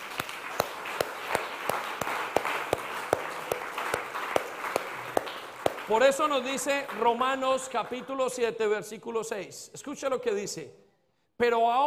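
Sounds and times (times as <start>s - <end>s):
audience applause: 0.0s - 7.2s
speech: 5.9s - 10.8s, 11.4s - 11.8s.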